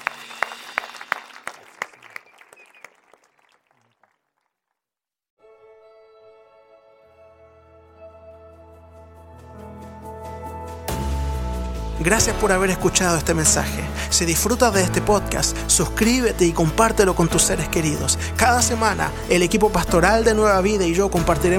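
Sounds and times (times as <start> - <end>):
audience applause: 0.0 - 4.4
speech: 12.0 - 21.5.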